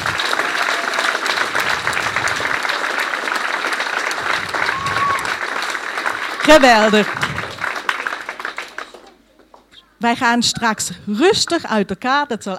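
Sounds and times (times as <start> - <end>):
audience applause: 0.0 - 9.7
speech: 6.5 - 7.2, 10.0 - 12.5.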